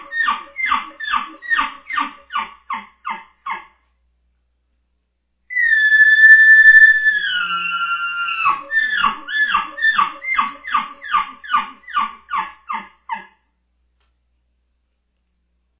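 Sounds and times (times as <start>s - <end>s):
bull elk bugling: 0.0s - 3.8s, 5.5s - 13.4s.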